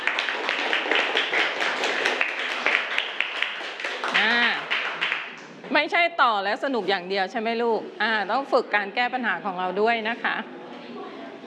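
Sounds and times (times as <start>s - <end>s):
children clapping for a group: 0.0s - 5.6s
speech: 5.8s - 10.6s.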